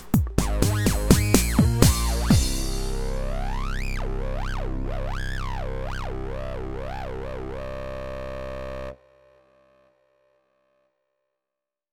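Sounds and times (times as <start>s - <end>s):
dirty electro music: 0.0s - 8.9s.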